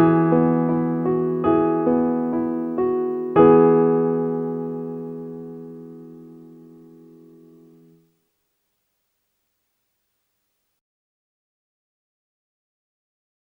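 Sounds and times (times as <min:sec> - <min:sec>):
solo piano: 0:00.0 - 0:08.1.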